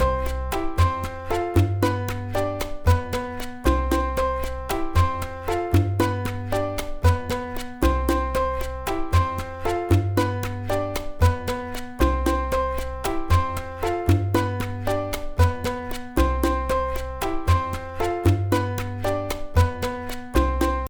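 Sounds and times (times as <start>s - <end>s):
mambo music with montuno: 0.0s - 20.8s.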